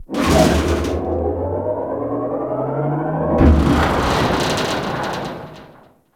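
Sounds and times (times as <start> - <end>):
ship external machinery running: 0.0 - 5.9.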